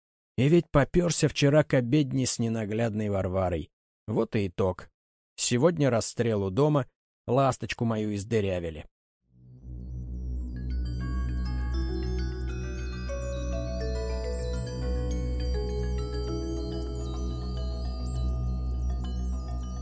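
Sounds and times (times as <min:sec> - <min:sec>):
speech: 0:00.4 - 0:08.9
church bells ringing loudly: 0:11.2 - 0:19.8.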